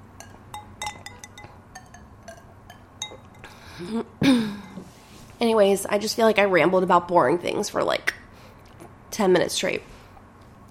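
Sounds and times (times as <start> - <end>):
light wine glass clinks: 0.2 - 3.5
speech: 3.8 - 4.6, 5.4 - 8.1, 9.2 - 9.9.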